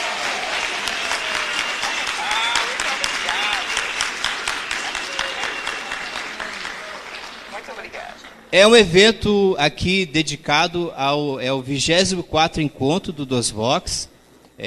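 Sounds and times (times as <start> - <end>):
audience applause for a volunteer: 0.0 - 8.5
speech: 8.5 - 14.6.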